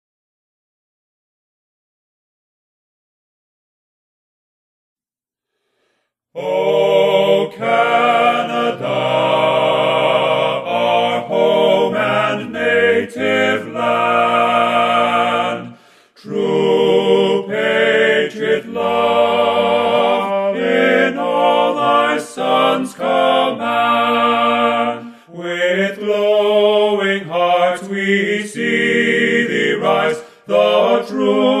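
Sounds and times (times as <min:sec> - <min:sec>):
TTBB male choir singing an anthem a cappella: 0:06.4 - 0:31.5.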